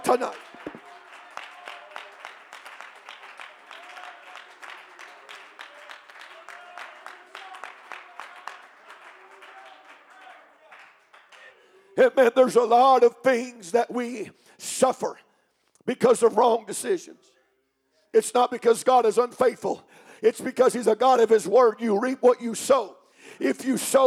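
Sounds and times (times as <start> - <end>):
audience clapping hands: 0.0 - 12.8
speech: 0.1 - 0.5, 12.0 - 15.2, 15.9 - 17.3, 18.1 - 24.0.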